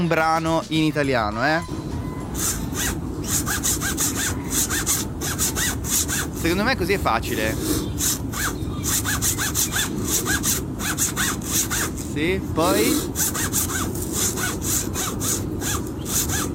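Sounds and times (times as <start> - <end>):
speech: 0.0 - 4.1, 6.4 - 8.2, 9.6 - 13.8
trouser pocket zipper being zipped: 2.4 - 6.6, 7.5 - 12.2, 12.8 - 16.5.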